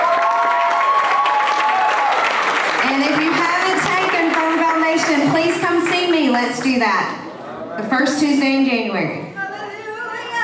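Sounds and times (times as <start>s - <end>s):
congregation cheering: 0.0s - 5.2s
congregation applause at a Sunday church service: 0.0s - 6.7s
speech: 8.0s - 9.2s.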